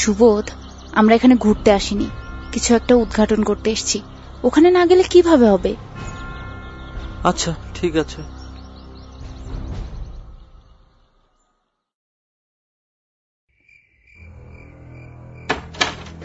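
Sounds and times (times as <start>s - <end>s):
speech: 0.0s - 5.9s, 7.2s - 8.4s
insects chirping: 0.0s - 11.0s, 13.5s - 16.2s
key unlocking a door: 15.5s - 16.2s.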